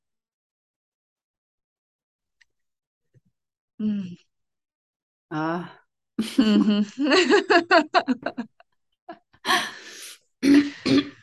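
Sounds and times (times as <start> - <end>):
speech: 3.8 - 4.3, 5.3 - 9.7
laughter: 6.2 - 8.6
person clearing throat: 10.4 - 11.2.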